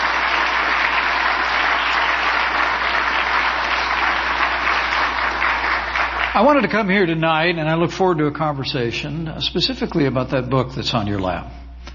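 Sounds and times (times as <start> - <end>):
audience applause: 0.0 - 6.9
speech: 6.4 - 11.6.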